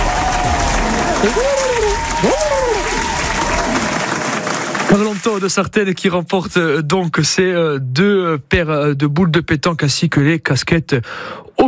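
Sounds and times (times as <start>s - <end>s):
audience applauding loudly: 0.0s - 5.6s
speech: 0.4s - 2.4s, 4.9s - 11.6s
voice rising and falling in pitch: 1.0s - 3.0s.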